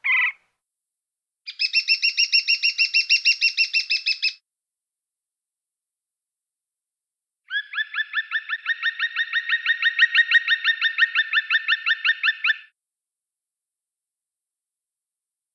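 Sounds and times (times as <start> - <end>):
woodpecker chirping: 0.0 - 0.4, 1.5 - 4.4, 7.5 - 12.7.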